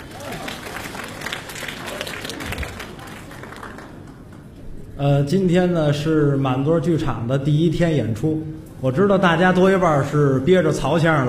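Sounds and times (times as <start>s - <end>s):
audience applause welcoming performer: 0.0s - 4.6s
speech: 5.0s - 11.2s.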